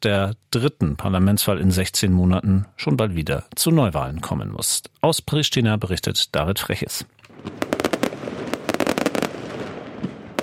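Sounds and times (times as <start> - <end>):
speech: 0.0 - 7.8
fireworks exploding: 7.3 - 10.4.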